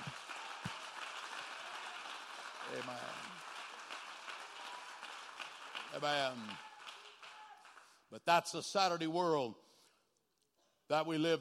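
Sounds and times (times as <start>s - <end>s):
people clapping: 0.0s - 8.4s
speech: 2.7s - 3.3s, 6.0s - 6.7s, 8.1s - 9.6s, 10.9s - 11.3s.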